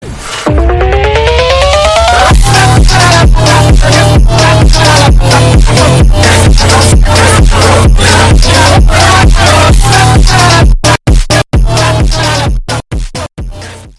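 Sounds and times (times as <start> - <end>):
phonk music: 0.4 - 13.9.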